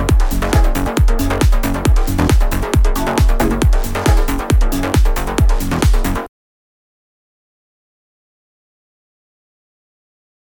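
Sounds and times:
bass: 0.0 - 6.3.

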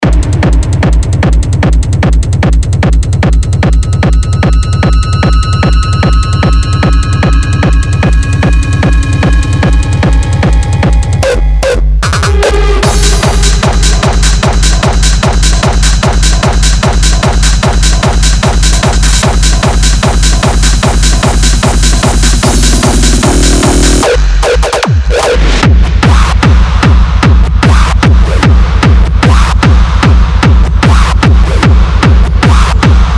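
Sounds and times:
industrial techno: 0.0 - 33.1.

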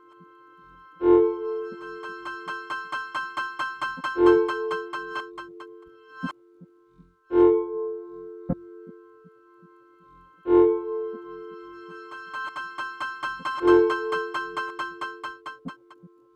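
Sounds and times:
granular synthesis texture: 0.2 - 6.3, 10.4 - 16.0.

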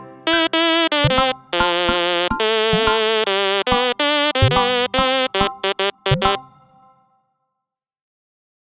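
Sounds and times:
stylophone: 0.0 - 6.4.

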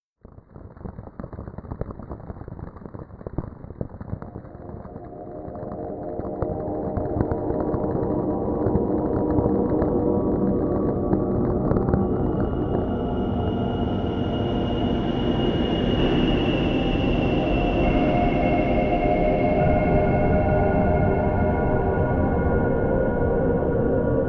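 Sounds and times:
soundscape: 3.8 - 24.2.

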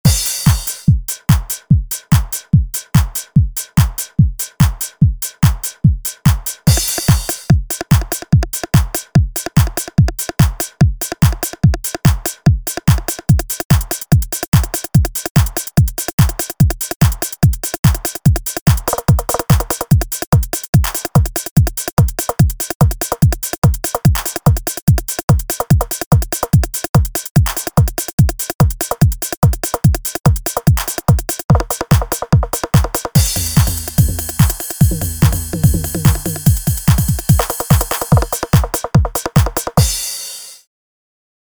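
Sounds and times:
d909 drum machine kit: 0.0 - 40.6.

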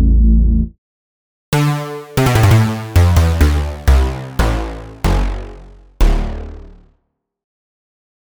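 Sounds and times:
basses nonstep: 1.6 - 6.8.

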